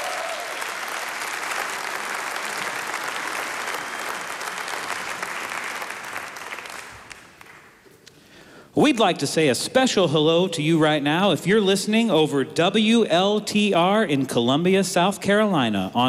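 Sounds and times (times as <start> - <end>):
audience applause: 0.0 - 7.8
speech: 8.8 - 16.0.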